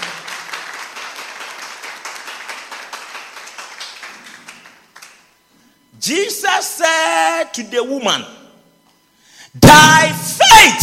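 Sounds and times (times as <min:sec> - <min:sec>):
crowd clapping: 0:00.0 - 0:05.4
speech: 0:06.0 - 0:08.4.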